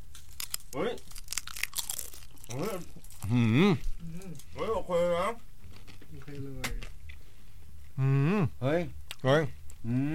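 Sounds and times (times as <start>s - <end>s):
crunching a bite of fried sun-dried fish: 0.0s - 3.5s
speech: 0.7s - 1.1s, 2.5s - 3.9s, 8.0s - 10.0s.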